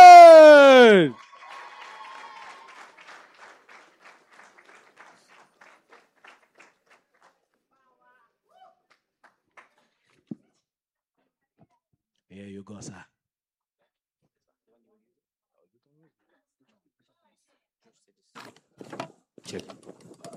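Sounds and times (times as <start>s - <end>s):
audience at a live stage show clapping in steady unison rhythm: 0.0s - 7.4s.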